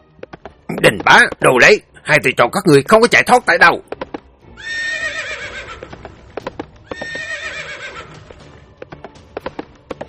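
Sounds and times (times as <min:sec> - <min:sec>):
horses galloping: 0:00.0 - 0:01.6, 0:03.5 - 0:10.0
speech: 0:00.8 - 0:03.9
horses neighing: 0:04.6 - 0:08.4.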